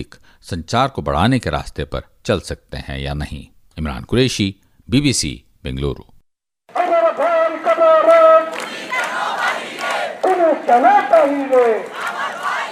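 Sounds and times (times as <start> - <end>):
speech: 0.0 - 6.1, 7.2 - 8.6, 10.5 - 12.0
crowd of protesting students chanting slogans: 6.7 - 12.7.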